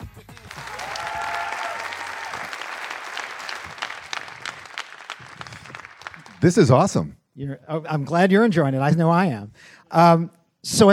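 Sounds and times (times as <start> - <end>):
audience applause welcoming a guest onto an event stage: 0.3 - 6.7
speech: 6.4 - 10.9.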